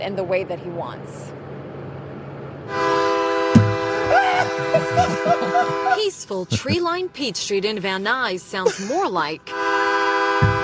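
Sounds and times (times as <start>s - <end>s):
speech: 0.0s - 1.4s, 2.7s - 2.9s, 4.4s - 9.8s
train horn blaring: 2.7s - 4.1s, 5.0s - 6.0s, 9.5s - 10.6s
sharp thump: 3.6s - 4.2s, 10.4s - 10.6s
laughter: 3.9s - 6.8s, 8.6s - 9.1s.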